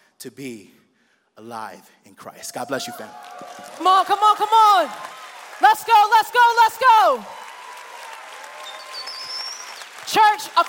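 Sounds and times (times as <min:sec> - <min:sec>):
speech: 0:00.2 - 0:00.8, 0:01.4 - 0:07.4, 0:10.1 - 0:10.6
audience applauding: 0:02.7 - 0:10.6
faint whistles: 0:08.6 - 0:09.8.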